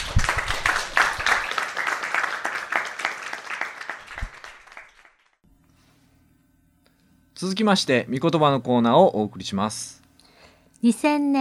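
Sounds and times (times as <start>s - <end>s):
audience applause: 0.0s - 5.4s
speech: 7.4s - 10.0s, 10.8s - 11.3s.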